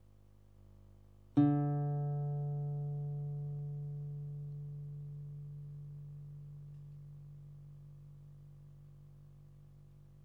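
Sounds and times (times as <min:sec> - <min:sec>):
guitar: 0:01.4 - 0:08.4.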